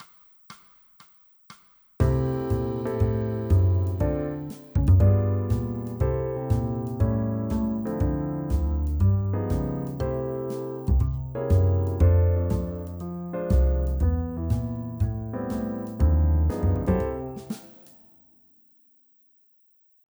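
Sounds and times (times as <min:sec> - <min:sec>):
bass: 0:02.0 - 0:17.5.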